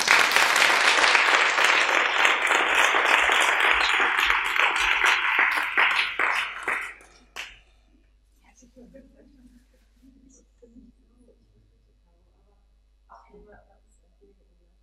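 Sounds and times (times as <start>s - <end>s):
audience applause: 0.0s - 7.6s.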